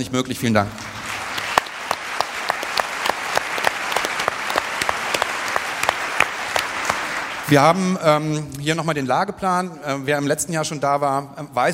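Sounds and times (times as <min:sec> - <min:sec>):
speech: 0:00.0 - 0:01.0, 0:07.5 - 0:11.7
audience applause: 0:00.8 - 0:07.8.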